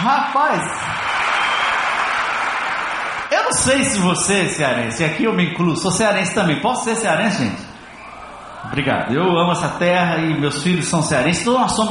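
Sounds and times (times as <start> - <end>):
speech: 0.0 - 1.0, 3.5 - 7.7, 8.6 - 11.8
audience applause: 0.0 - 4.0.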